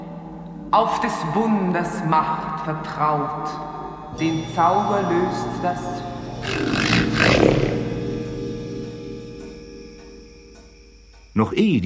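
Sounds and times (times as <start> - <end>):
speech: 0.7 - 7.4, 11.4 - 11.8
very loud rattling snoring: 6.3 - 8.4.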